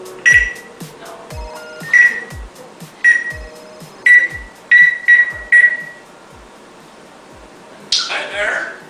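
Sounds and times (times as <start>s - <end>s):
parrot imitating cordless phone dialing beeps: 0.3s - 0.7s, 1.8s - 2.4s, 3.0s - 3.5s, 4.1s - 6.0s.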